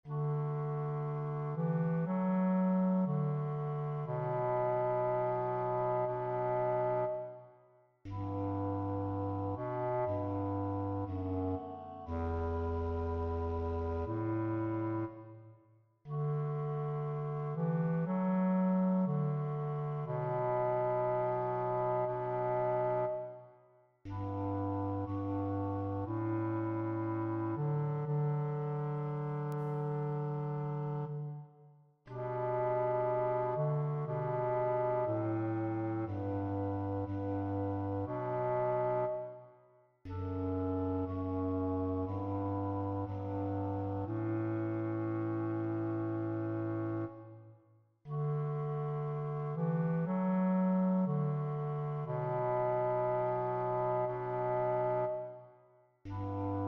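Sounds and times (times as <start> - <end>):
bass: 0.0 - 7.4, 8.0 - 15.4, 16.0 - 23.4, 24.0 - 39.4, 40.0 - 47.4, 48.0 - 55.4, 56.0 - 56.6.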